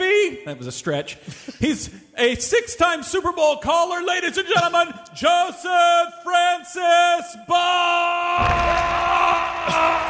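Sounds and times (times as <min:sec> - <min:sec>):
speech: 0:00.3 - 0:10.0
person imitating a cheering crowd: 0:08.4 - 0:10.0.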